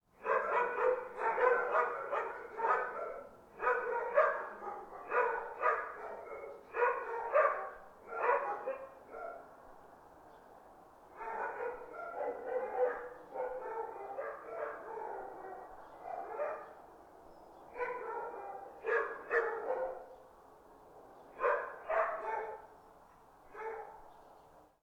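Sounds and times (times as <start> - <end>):
dogs barking: 0.2 - 9.5, 11.2 - 16.8, 17.7 - 20.1, 21.4 - 22.7, 23.5 - 24.1.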